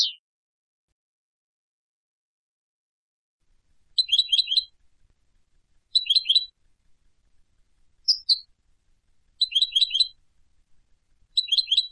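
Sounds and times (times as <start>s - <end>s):
European goldfinch Carduelis carduelis twittering trills: 0.0s - 0.2s, 6.0s - 6.5s, 9.4s - 10.2s, 11.4s - 11.9s.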